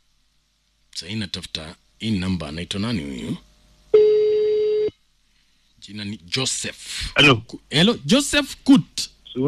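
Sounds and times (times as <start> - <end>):
speech: 1.0 - 3.5, 5.8 - 9.4
telephone ring tone: 3.9 - 4.9.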